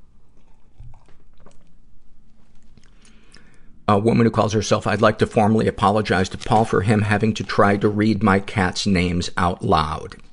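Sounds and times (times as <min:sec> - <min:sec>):
person sipping tea: 0:00.1 - 0:03.8
speech: 0:03.9 - 0:10.3.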